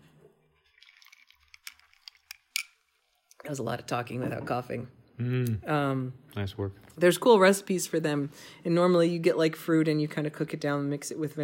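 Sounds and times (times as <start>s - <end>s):
person sipping a drink: 0.6s - 2.5s
speech: 3.4s - 11.4s.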